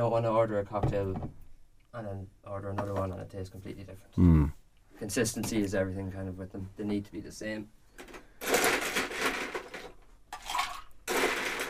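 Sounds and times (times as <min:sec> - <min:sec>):
speech: 0:00.0 - 0:08.2
ice being added to a cocktail shaker: 0:08.4 - 0:11.6.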